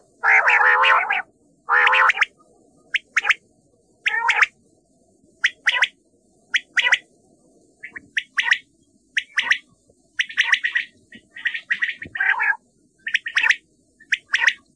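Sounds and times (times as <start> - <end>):
common quail calling: 0.0 - 2.3, 3.0 - 3.4, 4.0 - 4.5, 5.4 - 7.0, 7.8 - 8.6, 9.2 - 9.6, 10.2 - 14.7.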